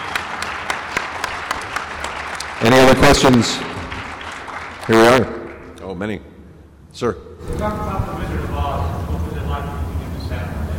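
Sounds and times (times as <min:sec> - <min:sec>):
sparse audience applause for a special guest: 0:00.0 - 0:05.8
speech: 0:02.6 - 0:03.7, 0:04.9 - 0:06.3, 0:07.0 - 0:08.4.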